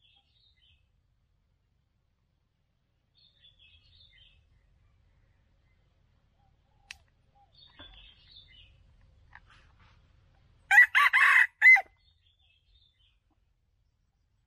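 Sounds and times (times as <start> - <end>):
red junglefowl crowing: 10.7 - 11.9.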